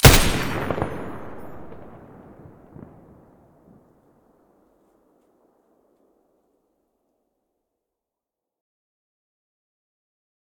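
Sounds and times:
M249 machine gun muzzle firing: 0.0 - 2.0.

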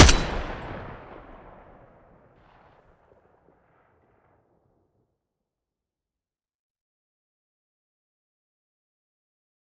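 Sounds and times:
AK-12 rifle muzzle blast: 0.0 - 1.8.

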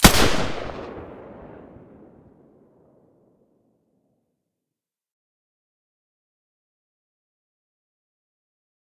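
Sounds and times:
G36 firing with silencer in stereo: 0.0 - 1.3.

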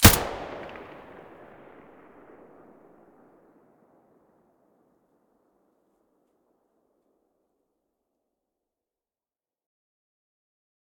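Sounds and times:
APS muzzle blast: 0.0 - 2.6.

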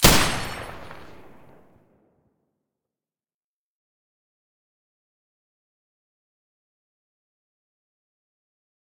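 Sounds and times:
M249 machine gun firing with silencer: 0.0 - 1.6.

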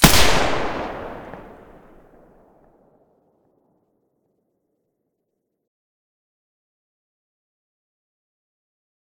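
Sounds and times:
G36 rifle with silencer shots: 0.0 - 2.2.

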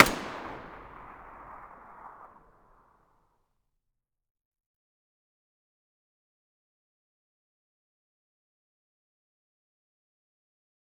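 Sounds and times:
distant MP5 gunshot: 0.0 - 2.4.

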